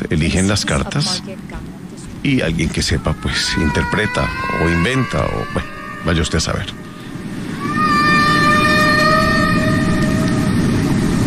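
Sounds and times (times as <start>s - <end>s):
speech: 0.0s - 1.6s, 2.2s - 6.9s
humpback whale song: 2.7s - 11.2s.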